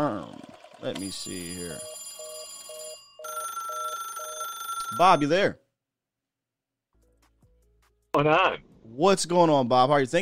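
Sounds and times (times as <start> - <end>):
speech: 0.0 - 2.0, 4.9 - 5.6, 8.2 - 10.1
phone line ringing while a sports talk show dials a guest in: 0.2 - 5.4.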